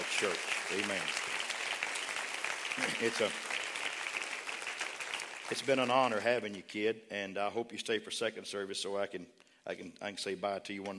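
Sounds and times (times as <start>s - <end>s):
audience applause: 0.0s - 6.2s
speech: 0.2s - 1.2s, 2.8s - 3.5s, 5.5s - 10.9s.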